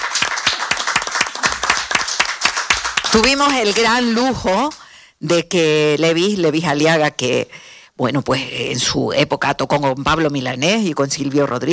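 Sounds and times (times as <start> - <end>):
audience applause: 0.0 - 4.8
speech: 3.1 - 11.7.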